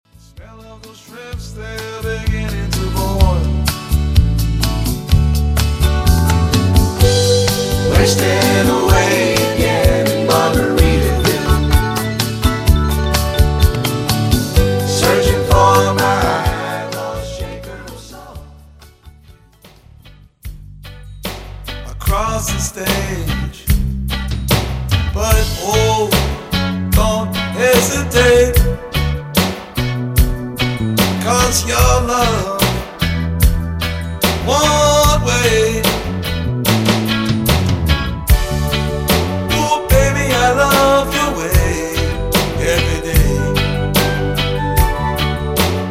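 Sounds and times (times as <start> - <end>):
island reggae track: 0.2 - 45.9.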